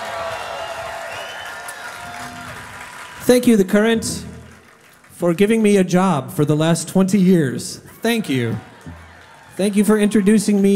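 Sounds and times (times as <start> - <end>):
audience applause and cheering: 0.0 - 5.7, 7.8 - 10.7
speech: 3.3 - 4.3, 5.2 - 9.0, 9.6 - 10.7.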